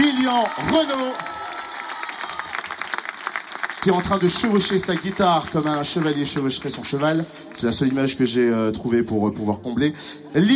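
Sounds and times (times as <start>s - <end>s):
audience applause: 0.0s - 8.2s
speech: 0.3s - 1.4s, 3.8s - 10.5s.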